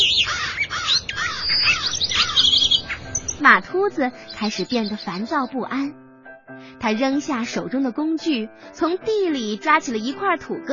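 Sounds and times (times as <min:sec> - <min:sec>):
noisy flock of birds calling: 0:00.0 - 0:03.5, 0:04.1 - 0:05.5
speech: 0:03.4 - 0:06.0, 0:06.8 - 0:10.7.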